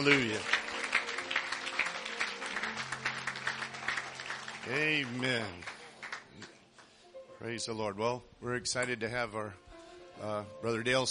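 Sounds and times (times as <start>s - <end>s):
speech: 0.0s - 0.6s, 4.6s - 5.8s, 7.4s - 9.6s, 10.2s - 11.1s
audience applause: 0.0s - 6.6s.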